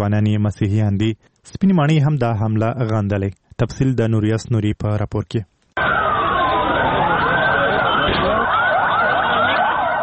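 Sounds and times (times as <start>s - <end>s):
speech: 0.0s - 5.6s
ambulance sirens wailing after a bomb blast in a Lahore park's parking area: 5.8s - 10.0s.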